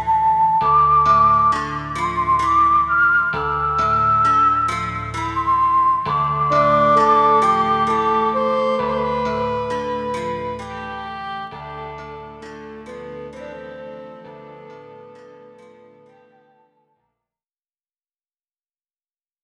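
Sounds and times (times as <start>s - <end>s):
whistle: 0.0s - 10.4s.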